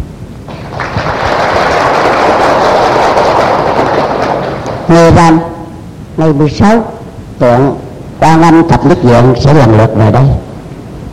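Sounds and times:
audience applause: 0.5 - 5.1
speech: 4.9 - 5.5, 6.2 - 10.4.

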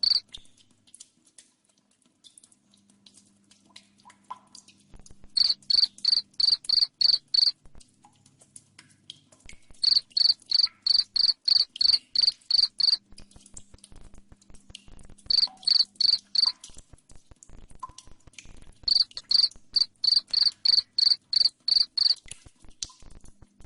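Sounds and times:
cricket chirping in shrill trilled pulses: 0.0 - 0.2, 5.4 - 7.5, 9.8 - 13.0, 15.3 - 16.6, 18.9 - 22.2
faint clicking: 0.0 - 23.6.

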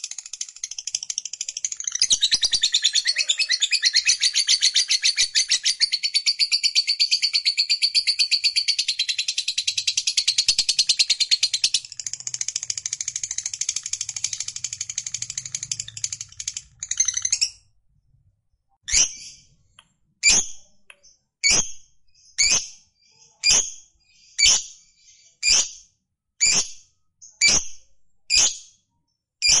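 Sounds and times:
lovebird song: 0.0 - 17.6, 18.9 - 19.5, 20.2 - 25.8.

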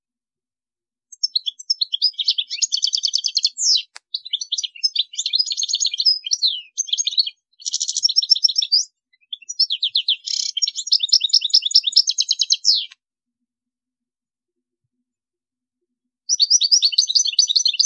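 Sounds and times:
European goldfinch twittering song: 1.1 - 13.0, 16.3 - 17.8
click: 3.8 - 4.1.

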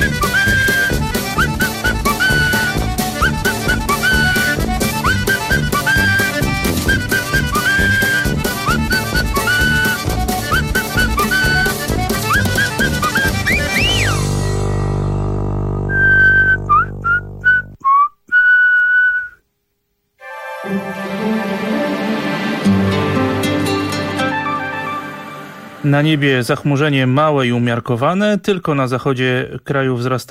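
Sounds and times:
person whistling a short clear melody: 0.0 - 14.2, 15.9 - 19.4
loud band music: 0.0 - 15.3, 20.2 - 26.0
speech: 25.9 - 30.2.

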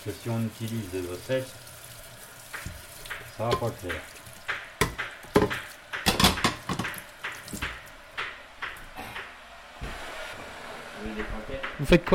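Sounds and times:
speech: 0.0 - 1.7, 3.4 - 4.2, 11.0 - 12.1
saucepan and utensils clattering while cooking courgettes in olive oil: 2.5 - 8.4.

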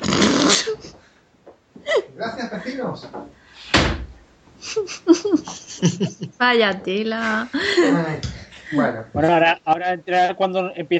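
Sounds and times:
laughter: 1.8 - 3.0, 4.6 - 6.4, 7.5 - 8.3
speech: 2.3 - 4.0, 4.7 - 10.9
window closing with a firm thud: 3.7 - 4.2.

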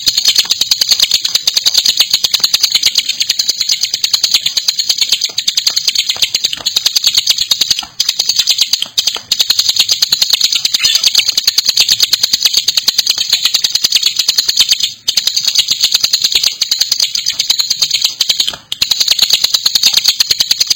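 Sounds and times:
Bar-winged Prinia chattering song: 0.0 - 20.7.

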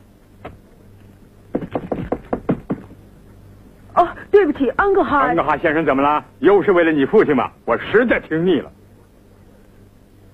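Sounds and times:
knocking on a door in a stage drama: 1.5 - 3.0
speech: 4.6 - 8.8.

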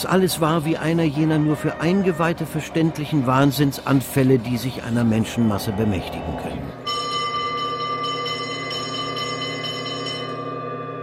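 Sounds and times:
speech: 0.0 - 6.8
sustained ringing bell tone: 6.8 - 11.0.

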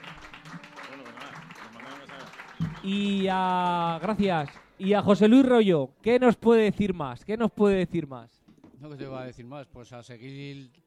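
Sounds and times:
audience applause: 0.0 - 4.8
speech: 2.8 - 10.8.

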